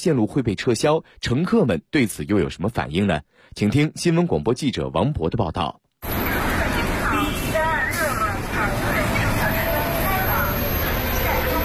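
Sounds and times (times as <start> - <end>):
speech: 0.0 - 6.1
route 126 city bus pulling into a stop: 6.0 - 11.6.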